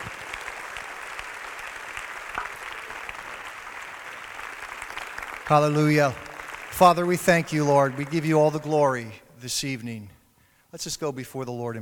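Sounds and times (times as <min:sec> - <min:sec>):
audience applause: 0:00.0 - 0:08.7
speech: 0:05.5 - 0:11.8.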